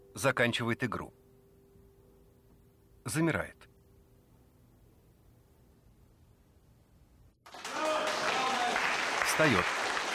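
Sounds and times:
speech: 0.2 - 1.2, 3.1 - 3.7, 9.4 - 9.8
hand clapping: 7.5 - 10.1.

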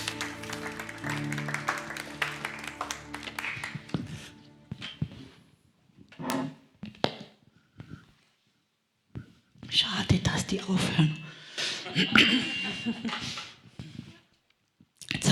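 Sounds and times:
audience applause: 0.0 - 5.0
speech: 9.8 - 11.2, 11.9 - 13.4.

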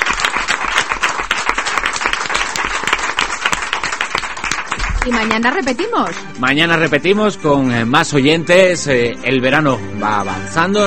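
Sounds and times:
applause: 0.0 - 6.4
speech: 5.0 - 10.8.

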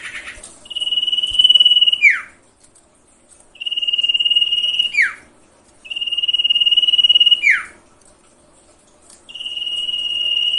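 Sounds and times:
sirtu cage bird song with buzzy rasping phrases and falling whistled slur: 0.0 - 2.4, 3.6 - 7.8, 9.3 - 10.5.

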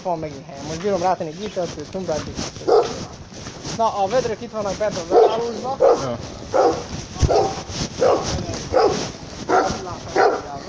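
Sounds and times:
speech: 0.0 - 8.4
dog barking: 2.6 - 3.1, 5.1 - 10.6.

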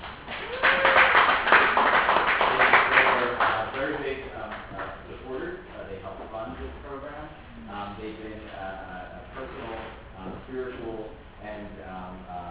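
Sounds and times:
audience applauding representatives of the New York Folk Arts Society: 0.0 - 3.9.

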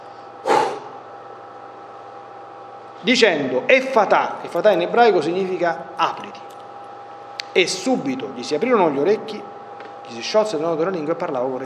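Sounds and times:
breath blown out onto someone's face: 0.4 - 1.0
speech: 3.0 - 6.6, 7.6 - 9.5, 10.1 - 11.6.

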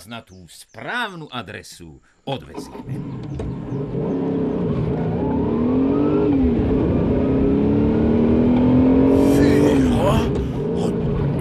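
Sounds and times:
speech: 0.0 - 3.6
eight-cylinder Bugatti car engine revving: 2.8 - 11.3.

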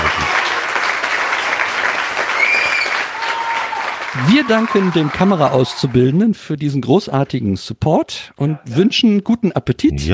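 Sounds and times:
applause: 0.0 - 6.0
speech: 4.2 - 10.1.

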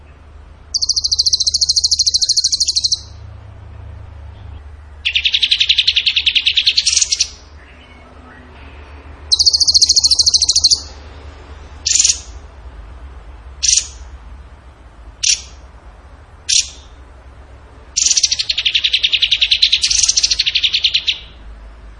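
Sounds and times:
bird trilling and chipping: 0.7 - 3.3, 4.3 - 8.1, 9.3 - 11.0, 11.8 - 12.4, 13.6 - 14.1, 15.2 - 15.7, 16.4 - 17.0, 18.0 - 21.4.

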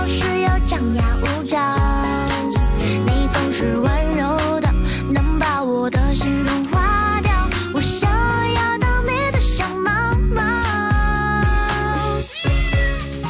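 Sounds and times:
upbeat pop tune with a steady thumping beat: 0.0 - 13.2
bright sung voice imitating cat meows: 12.2 - 13.2.

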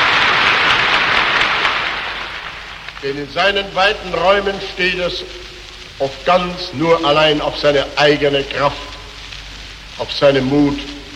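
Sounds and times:
crowd applause at a political speech in the Sportpalast: 0.0 - 3.0
speech: 3.0 - 9.0, 10.0 - 11.0.

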